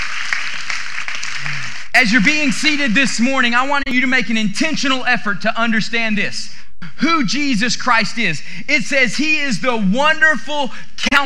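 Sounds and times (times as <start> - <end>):
audience applause: 0.0 - 1.9
speech: 2.0 - 11.2.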